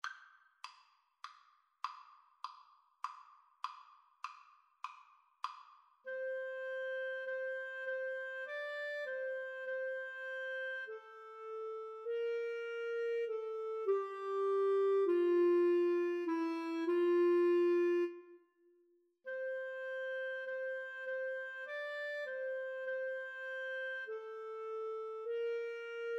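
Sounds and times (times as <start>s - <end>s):
clarinet and cello duet: 6.1s - 18.3s, 19.3s - 26.1s.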